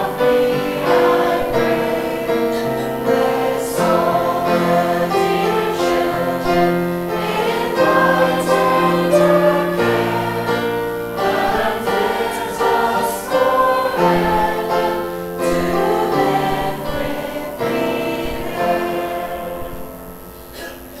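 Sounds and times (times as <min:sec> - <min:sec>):
guide Christmas carol: 0:00.0 - 0:20.9.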